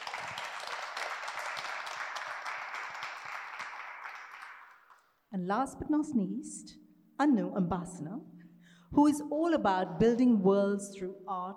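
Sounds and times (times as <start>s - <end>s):
crowd applauding: 0.0s - 5.0s
speech: 5.3s - 8.3s, 8.9s - 11.5s.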